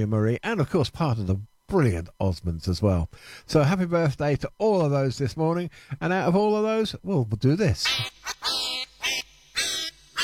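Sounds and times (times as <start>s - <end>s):
speech: 0.0s - 8.6s
duck quacking sound effect: 7.8s - 10.2s.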